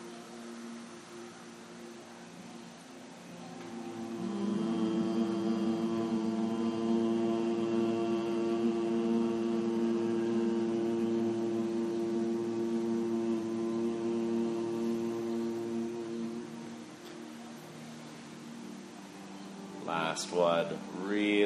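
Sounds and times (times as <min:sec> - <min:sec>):
Brahmari humming bee breath: 0:03.4 - 0:16.8
speech: 0:20.2 - 0:21.4.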